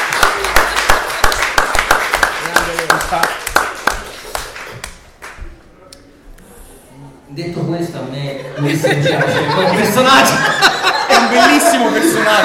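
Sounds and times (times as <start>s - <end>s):
audience applause: 0.0s - 5.4s
speech: 3.1s - 3.4s, 7.4s - 12.4s
laughter: 8.3s - 12.4s.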